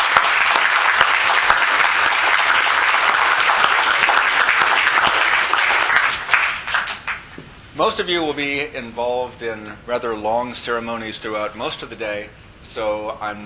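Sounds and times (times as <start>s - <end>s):
audience applause for a graduating class: 0.0s - 7.4s
speech: 7.8s - 13.4s.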